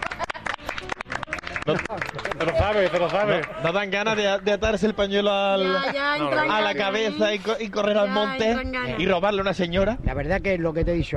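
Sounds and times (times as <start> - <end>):
audience applause: 0.0 - 3.9
speech: 1.6 - 11.1.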